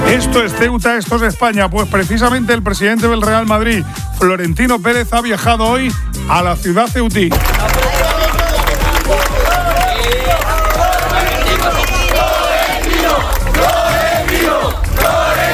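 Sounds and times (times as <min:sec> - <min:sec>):
speech: 0:00.1 - 0:08.0
dense crowd of Real Madrid fans in Ceuta roaring and chanting: 0:07.3 - 0:15.5.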